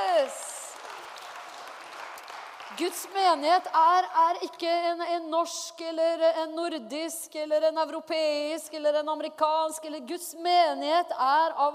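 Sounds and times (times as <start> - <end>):
audience applause: 0.0 - 3.1
speech: 2.8 - 11.7.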